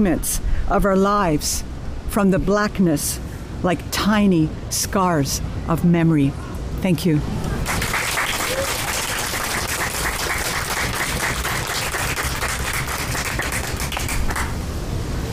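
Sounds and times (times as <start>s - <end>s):
speech: 0.0s - 7.5s
audience applause: 7.6s - 14.6s.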